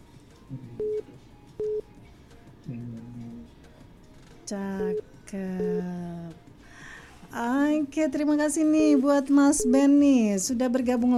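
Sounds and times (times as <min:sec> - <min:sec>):
telephone beeps on a radio station's call-in line: 0:00.8 - 0:01.9, 0:04.8 - 0:05.9, 0:09.5 - 0:10.2
speech: 0:04.5 - 0:06.1, 0:07.4 - 0:11.1.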